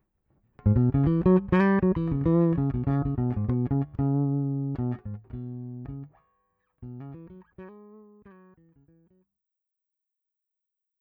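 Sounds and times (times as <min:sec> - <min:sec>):
bass track: 0:00.6 - 0:06.1.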